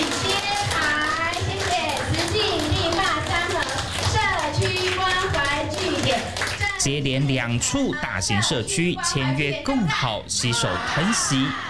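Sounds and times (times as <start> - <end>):
audience applause: 0.0 - 6.8
speech: 6.8 - 11.6.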